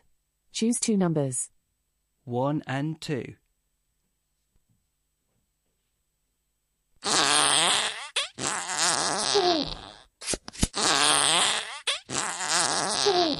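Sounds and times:
speech: 0.6s - 1.6s, 2.3s - 3.4s
cartoon fart sound effects: 7.0s - 13.3s.

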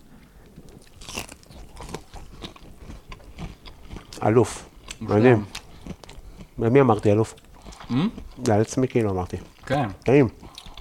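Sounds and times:
eating crunchy fried chicken: 0.4s - 10.7s
speech: 4.2s - 5.6s, 6.6s - 10.4s.

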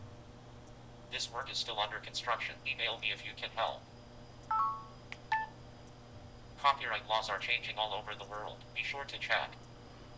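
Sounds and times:
speech: 1.1s - 3.9s, 6.6s - 9.7s
electronic beep: 4.5s - 5.5s.

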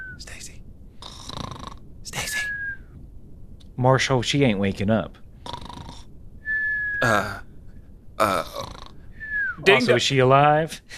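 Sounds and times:
voice imitating cartoon snoring with honk-shoo sound: 1.1s - 1.8s, 5.5s - 6.1s, 7.1s - 7.4s, 8.2s - 8.9s
speech: 3.8s - 5.2s, 7.1s - 7.5s, 8.2s - 8.6s, 9.6s - 10.9s.

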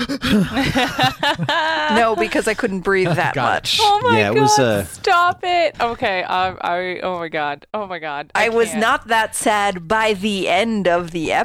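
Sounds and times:
person imitating gasping sobs: 0.0s - 0.7s
laughter: 0.0s - 4.7s
speech: 0.0s - 11.4s.

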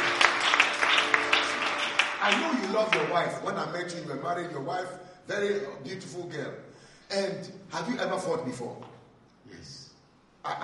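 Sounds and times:
crowd clapping: 0.0s - 3.5s
speech: 2.3s - 9.8s, 10.4s - 10.6s.

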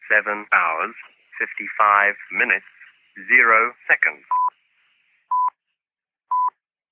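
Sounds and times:
speech: 0.1s - 4.4s
talking clock time signal beeps: 4.3s - 4.6s.

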